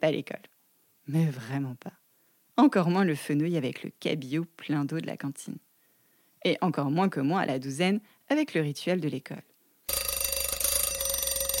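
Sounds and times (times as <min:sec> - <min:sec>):
speech: 0:00.0 - 0:00.5, 0:01.1 - 0:02.0, 0:02.6 - 0:05.7, 0:06.4 - 0:10.0
alarm clock ringing: 0:09.9 - 0:11.5.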